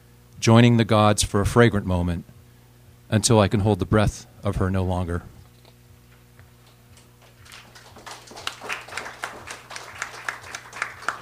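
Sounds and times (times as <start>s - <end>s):
speech: 0.4s - 2.3s, 3.1s - 5.3s
audience clapping: 7.0s - 11.2s.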